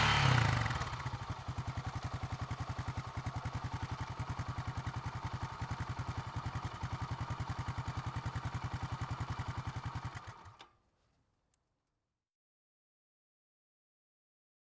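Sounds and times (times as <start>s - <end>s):
motorcycle: 0.0s - 10.7s.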